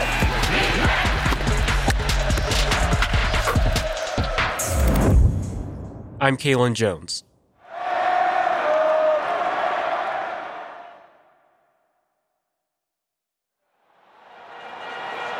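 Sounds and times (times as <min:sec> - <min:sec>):
packed arena crowd of Golden State Warriors fans roaring at Oracle Arena, Oakland: 0:00.0 - 0:04.9, 0:07.6 - 0:11.6, 0:13.9 - 0:15.3
speech: 0:06.2 - 0:07.3.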